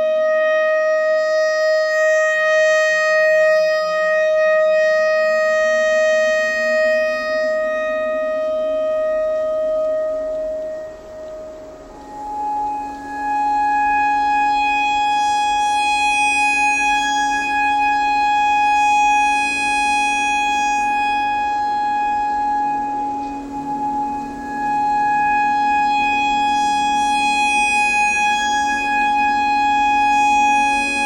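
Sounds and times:
clarinet notes in E pentatonic: 0.0 - 31.0
tornado siren: 0.0 - 31.0.

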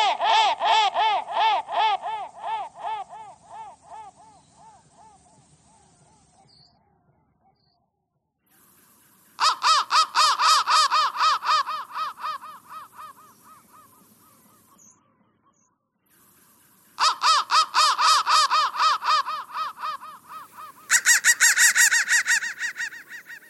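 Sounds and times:
crow giving fast harsh caws: 0.0 - 5.2, 9.4 - 14.0, 17.0 - 23.4.

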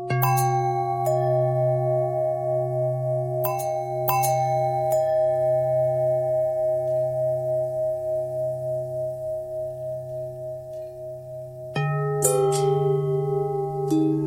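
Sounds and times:
long bell ringing: 0.2 - 14.1.

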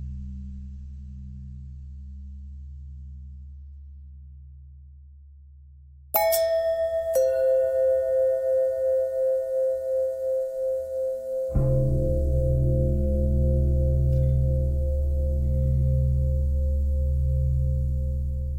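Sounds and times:
long pentatonic bell tones: 6.2 - 18.5.

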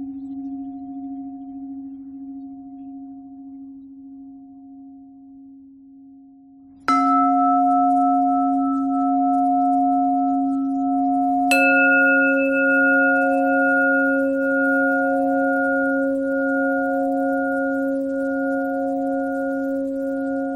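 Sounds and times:
pentatonic bell melody: 6.9 - 20.5.

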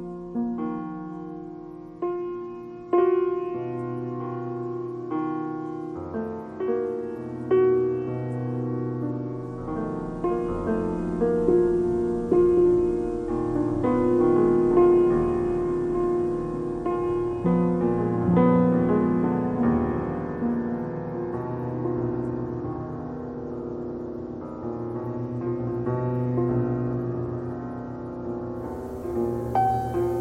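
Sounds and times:
piano noise: 0.0 - 30.2.

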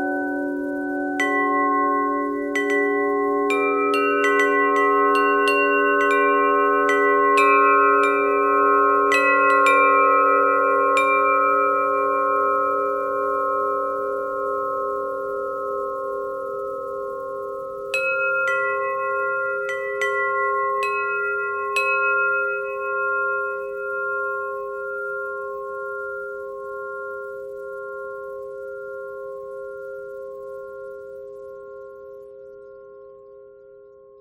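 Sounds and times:
bells ringing: 0.0 - 13.4, 17.9 - 26.1
bell thread buzz: 0.0 - 34.1.

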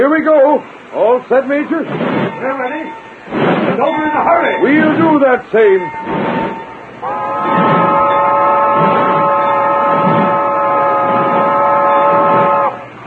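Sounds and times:
speech: 0.0 - 7.6
steam train rolling: 0.0 - 13.0
steam train multi-tone whistle: 5.8 - 13.0.

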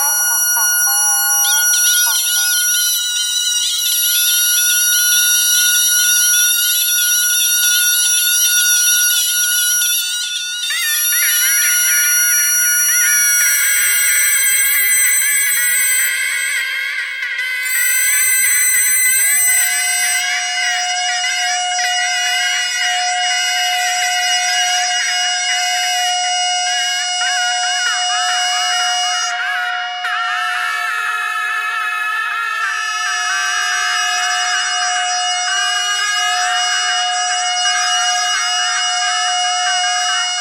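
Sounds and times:
geese: 0.0 - 2.6
bagpipe: 0.0 - 40.4.

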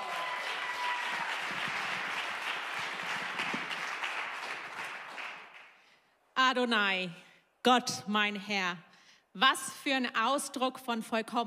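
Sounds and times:
audience applause greeting a female preacher at a church service: 0.0 - 5.8
speech: 6.5 - 11.4.

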